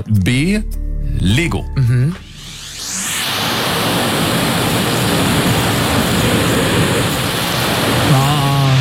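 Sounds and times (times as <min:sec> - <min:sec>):
speech: 0:00.0 - 0:02.2
vacuum cleaner sucking up confetti: 0:02.4 - 0:08.7.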